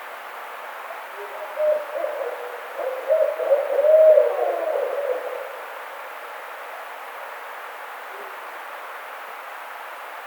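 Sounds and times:
Barred owl hooting: 0.9s - 5.6s.

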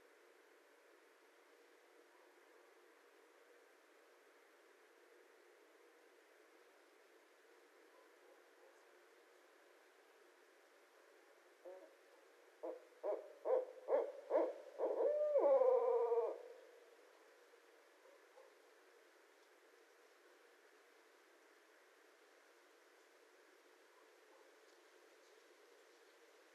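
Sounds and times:
barred owl hooting: 11.6s - 12.0s, 12.6s - 16.8s.

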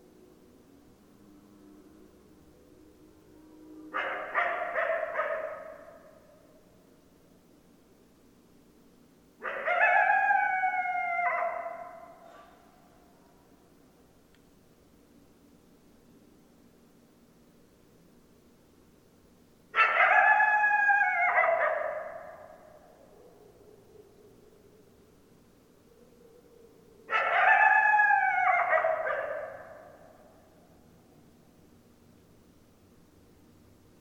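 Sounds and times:
coyotes howling: 3.6s - 6.3s, 9.4s - 12.2s, 19.8s - 30.6s.

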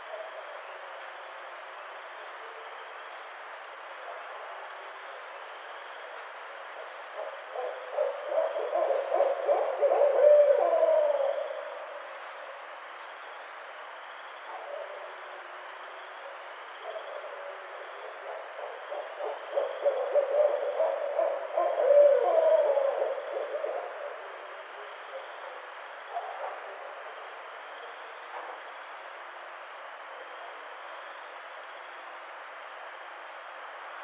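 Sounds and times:
barred owl hooting: 7.2s - 12.0s, 16.8s - 27.0s.

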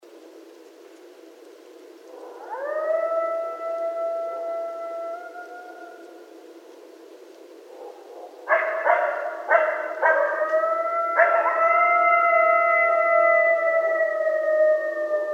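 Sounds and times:
several coyotes howling: 2.0s - 6.7s, 7.6s - 15.3s.

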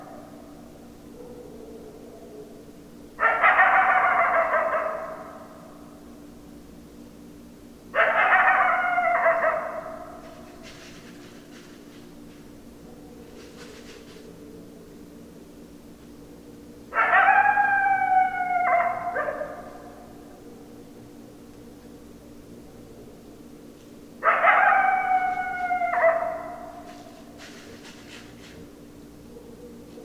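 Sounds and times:
coyotes howling: 0.0s - 5.9s, 7.9s - 11.6s, 16.3s - 21.3s, 24.2s - 27.4s, 28.0s - 30.0s.

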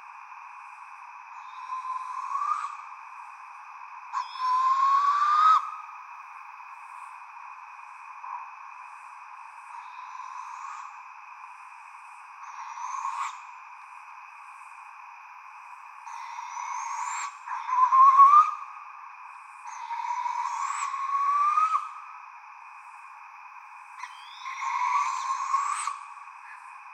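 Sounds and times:
Barred Owl calling: 1.3s - 3.3s, 4.1s - 6.0s, 9.7s - 11.0s, 12.4s - 13.8s, 16.0s - 18.8s, 19.5s - 22.2s, 24.0s - 26.8s.

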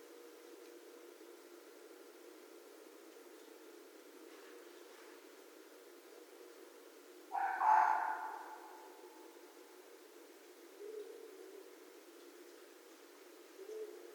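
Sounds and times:
low hiss: 0.0s - 14.1s
red fox harsh yelp: 7.4s - 9.0s.

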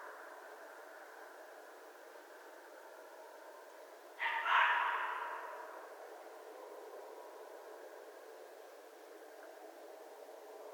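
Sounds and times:
red fox calling with raspy cries: 4.2s - 5.6s.

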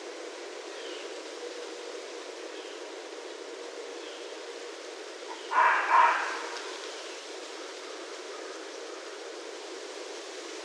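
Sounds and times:
red fox barking: 5.5s - 6.7s.

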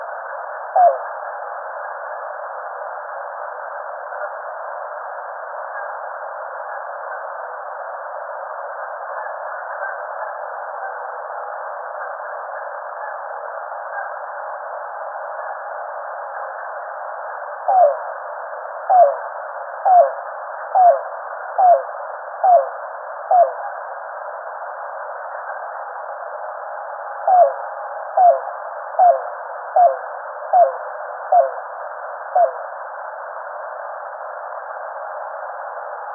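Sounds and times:
Yellow-billed Cuckoo calling: 0.8s - 1.0s, 17.7s - 18.0s, 18.9s - 19.2s, 19.9s - 20.2s, 20.8s - 21.0s, 21.6s - 22.7s, 23.3s - 23.6s, 27.3s - 27.6s, 28.2s - 28.4s, 29.0s - 31.6s, 32.4s - 32.6s.

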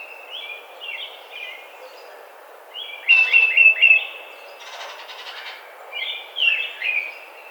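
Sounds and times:
Tufted Titmouse: 3.0s - 7.0s.

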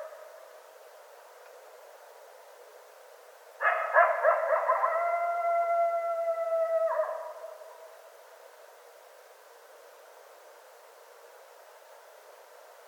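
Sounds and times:
coyote howling: 3.7s - 7.8s.

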